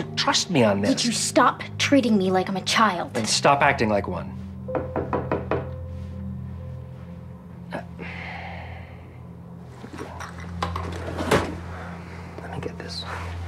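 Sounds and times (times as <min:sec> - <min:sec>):
speech: 0:00.0 - 0:05.0
sharp knocks on a door: 0:04.7 - 0:05.7.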